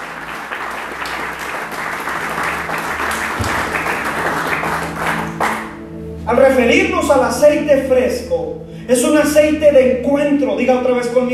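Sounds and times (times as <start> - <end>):
audience applause: 0.0 - 5.8
speech: 6.3 - 11.3.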